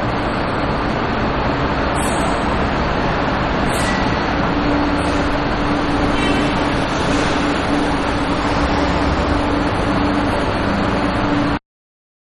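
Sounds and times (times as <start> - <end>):
bus terminal loading area background: 0.0 - 11.6.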